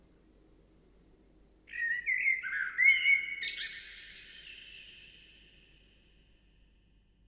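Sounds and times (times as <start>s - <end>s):
bird song: 1.7s - 6.4s.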